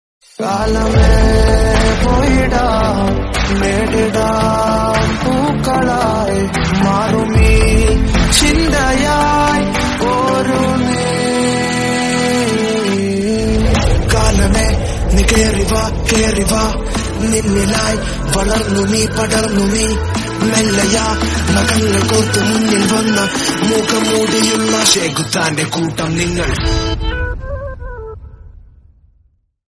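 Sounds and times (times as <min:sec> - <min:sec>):
ringtone music: 0:00.7 - 0:14.6, 0:15.4 - 0:27.2.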